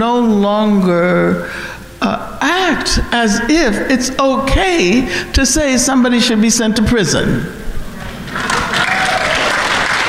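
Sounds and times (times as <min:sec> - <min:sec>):
speech: 0:00.0 - 0:07.6
audience applause: 0:08.2 - 0:10.0.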